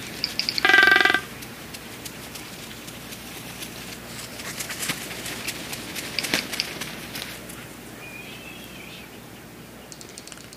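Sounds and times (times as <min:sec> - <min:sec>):
Magnificent Frigatebird beak tapping: 0:00.1 - 0:03.8, 0:04.9 - 0:07.3.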